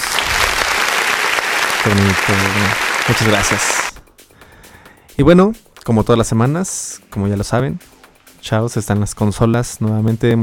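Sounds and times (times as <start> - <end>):
applause: 0.0 - 4.0
speech: 1.8 - 3.8, 5.2 - 10.4.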